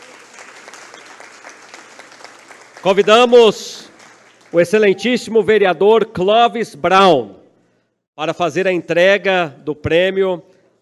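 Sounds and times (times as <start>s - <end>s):
audience applause: 0.0s - 4.9s
speech: 2.8s - 3.8s, 4.5s - 7.4s, 8.2s - 10.5s.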